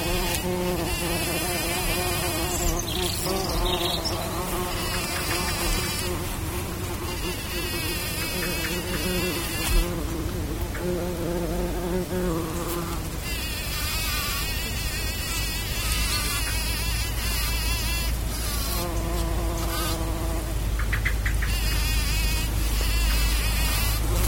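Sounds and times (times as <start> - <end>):
bumble bees buzzing: 0.0 - 20.8, 21.4 - 24.2.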